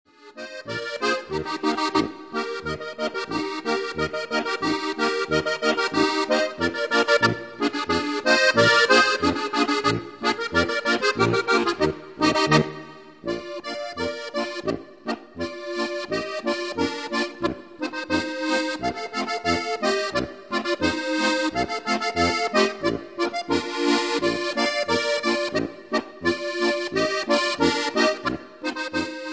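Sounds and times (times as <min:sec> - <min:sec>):
Bavarian folk dance music on accordion: 0:00.1 - 0:29.3.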